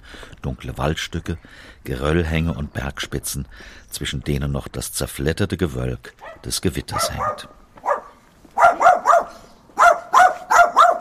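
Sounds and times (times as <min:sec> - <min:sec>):
speech: 0:00.4 - 0:07.6
spitz and poodle mix dog yapping loudly: 0:06.2 - 0:10.9.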